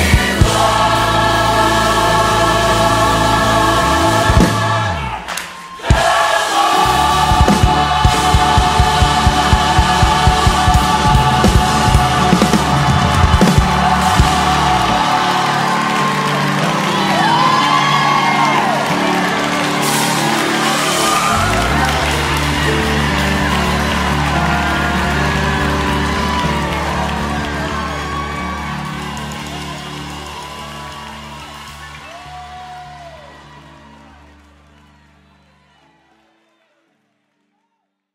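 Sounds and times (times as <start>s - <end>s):
gospel choir singing: 0.0s - 29.4s.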